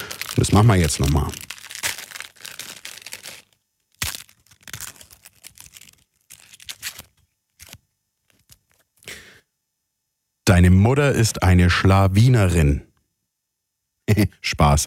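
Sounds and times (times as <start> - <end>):
fortune cookie wrapper crinkling and brittle cookie cracking open: 0.0 - 9.1
speech: 0.4 - 1.5, 10.5 - 12.9, 14.1 - 14.8.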